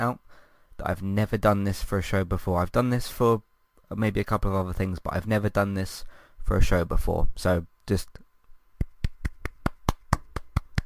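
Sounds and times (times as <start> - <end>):
speech: 0.0 - 0.2, 0.8 - 8.2
person clapping hands: 8.8 - 10.8.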